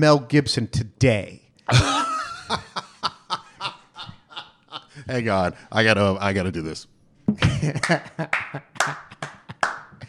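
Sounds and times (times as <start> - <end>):
speech: 0.0 - 2.8, 5.1 - 9.0
laughter: 1.7 - 5.1, 7.4 - 9.7
slow clap: 7.8 - 10.0.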